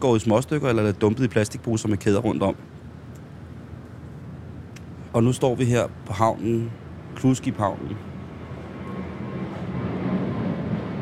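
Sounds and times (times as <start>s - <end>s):
speech: 0.0s - 2.8s, 5.2s - 8.1s
airplane flying overhead: 0.0s - 11.0s.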